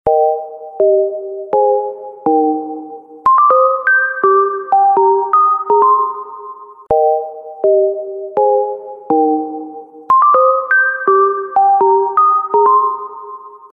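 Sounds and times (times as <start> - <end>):
ringtone: 0.1 - 13.7.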